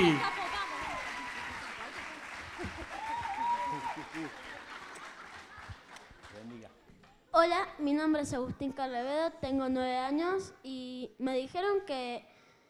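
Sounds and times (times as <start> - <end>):
scattered cheers: 0.0 - 4.4
audience applause: 0.0 - 6.7
speech: 7.4 - 12.3.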